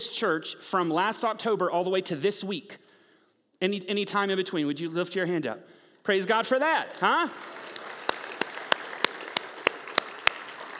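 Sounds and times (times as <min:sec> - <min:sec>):
speech: 0:00.0 - 0:02.8, 0:03.6 - 0:07.6
audience applause: 0:06.8 - 0:10.7.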